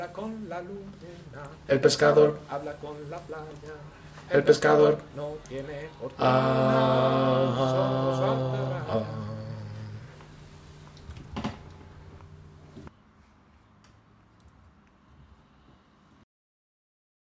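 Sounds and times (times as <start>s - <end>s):
tenor singing: 0.0s - 10.3s.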